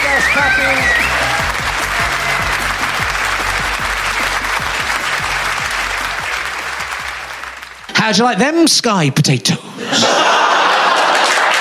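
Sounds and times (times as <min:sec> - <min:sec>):
audience applause added as effect: 0:00.0 - 0:08.0, 0:10.4 - 0:11.6
speech: 0:00.2 - 0:01.0, 0:08.0 - 0:10.4
laughter: 0:09.7 - 0:11.6.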